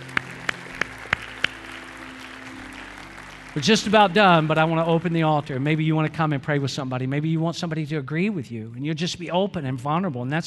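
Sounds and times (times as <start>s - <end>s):
audience applause: 0.0s - 6.4s
speech: 3.6s - 10.4s.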